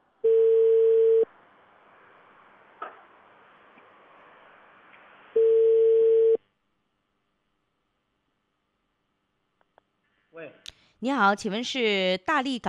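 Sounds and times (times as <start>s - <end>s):
phone line ringback tone: 0.3s - 1.3s, 5.4s - 6.4s
speech: 10.4s - 12.6s.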